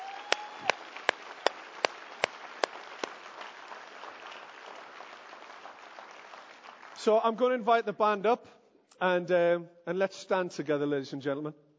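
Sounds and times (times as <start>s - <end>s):
audience round of applause in steady handclaps: 0.0s - 7.0s
speech: 7.0s - 11.6s.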